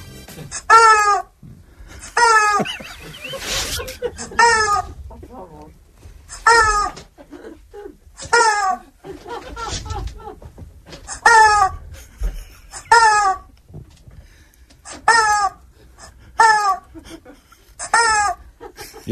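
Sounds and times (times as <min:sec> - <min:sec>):
rubber chicken toy squawking: 0:00.5 - 0:01.4, 0:02.1 - 0:02.6, 0:03.2 - 0:05.0, 0:06.3 - 0:07.0, 0:11.1 - 0:11.8, 0:12.8 - 0:13.5, 0:14.8 - 0:16.9, 0:17.8 - 0:18.4
laughter: 0:01.8 - 0:05.3, 0:06.5 - 0:13.6, 0:16.4 - 0:19.1
people talking: 0:02.6 - 0:05.8, 0:18.8 - 0:19.1.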